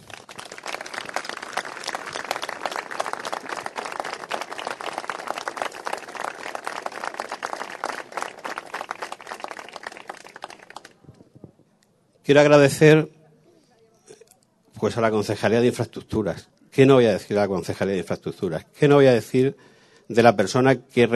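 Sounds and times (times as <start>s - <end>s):
audience applause: 0.0s - 11.0s
speech: 12.3s - 13.2s, 14.9s - 21.1s.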